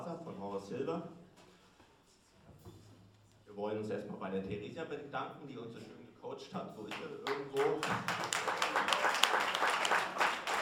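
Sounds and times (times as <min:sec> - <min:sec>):
speech: 0:00.6 - 0:01.2, 0:03.5 - 0:10.2
audience applause: 0:07.2 - 0:10.6.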